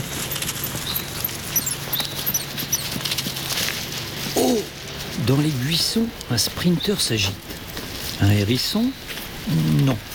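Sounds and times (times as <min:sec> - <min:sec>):
birds chirping: 0:00.0 - 0:07.5
footsteps on leaves: 0:00.0 - 0:10.1
speech: 0:05.3 - 0:07.6, 0:08.2 - 0:10.1.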